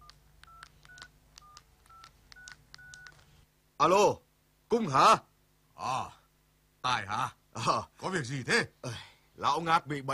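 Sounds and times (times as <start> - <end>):
touch-tone keypad beeps dialing a telephone number: 0.0 - 3.2
speech: 3.8 - 6.2, 6.8 - 10.1.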